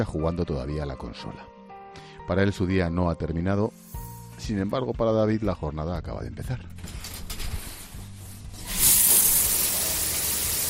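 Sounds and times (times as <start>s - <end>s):
speech: 0.0s - 1.6s, 2.3s - 7.0s
shower running: 8.6s - 10.6s.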